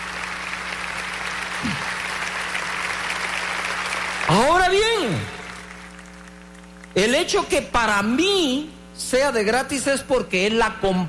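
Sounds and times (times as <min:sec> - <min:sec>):
audience applause: 0:00.0 - 0:07.0
speech: 0:07.0 - 0:11.0.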